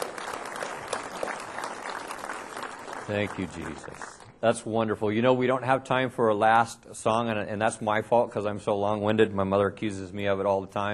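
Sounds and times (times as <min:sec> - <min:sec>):
church congregation applauding: 0:00.0 - 0:04.4
speech: 0:03.1 - 0:10.9.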